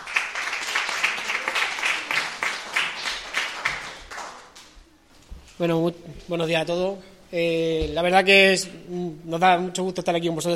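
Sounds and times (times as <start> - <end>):
audience applause: 0.0 - 4.7
speech: 5.6 - 10.5.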